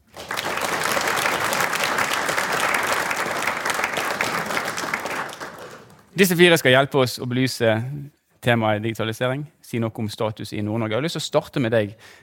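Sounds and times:
audience applause: 0.0 - 6.1
speech: 6.2 - 12.2.

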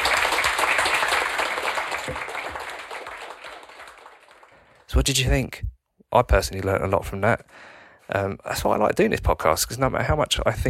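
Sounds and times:
crowd applause: 0.0 - 4.9
speech: 5.0 - 10.6.

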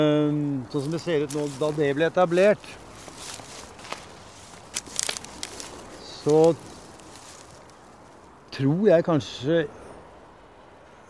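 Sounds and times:
speech: 0.0 - 3.4, 6.2 - 6.7, 8.6 - 9.8
footsteps walking downhill outdoors: 0.6 - 8.5.

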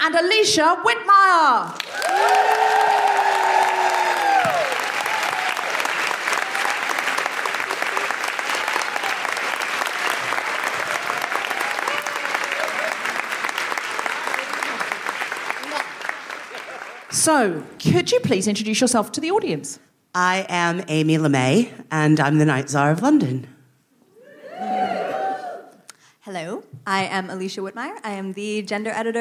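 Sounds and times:
speech: 0.0 - 2.6, 17.2 - 23.5, 26.3 - 29.2
high woo-hooing whoops: 1.8 - 7.2, 10.0 - 13.2, 24.1 - 25.9
live show audience applauding: 1.8 - 17.2.

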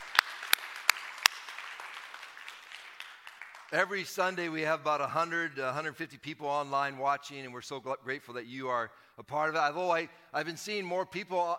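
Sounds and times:
audience applause: 0.0 - 3.8
speech: 3.7 - 11.5.

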